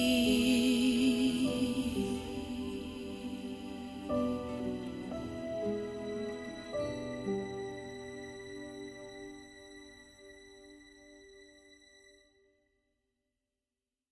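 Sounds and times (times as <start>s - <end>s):
soprano singing a prayer: 0.0s - 10.4s.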